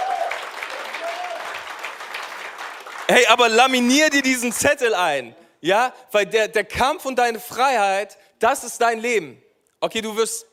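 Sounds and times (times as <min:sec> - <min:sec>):
church congregation applauding during a service: 0:00.0 - 0:04.7
speech: 0:03.1 - 0:10.5.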